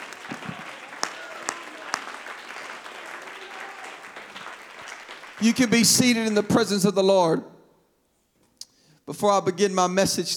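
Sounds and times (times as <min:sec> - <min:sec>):
audience clapping: 0:00.0 - 0:06.7
speech: 0:05.4 - 0:07.5, 0:09.1 - 0:10.3.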